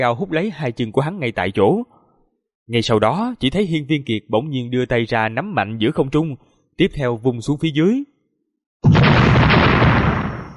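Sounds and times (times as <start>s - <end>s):
speech: 0.0s - 2.0s, 2.7s - 8.1s
loud explosion boom: 8.8s - 10.5s.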